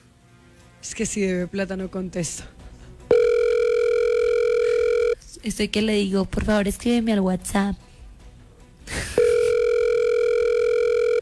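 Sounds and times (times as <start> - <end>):
speech: 0.8 - 2.6, 5.4 - 7.9
telephone ringing tone on an unanswered call: 3.1 - 5.2, 9.2 - 11.2.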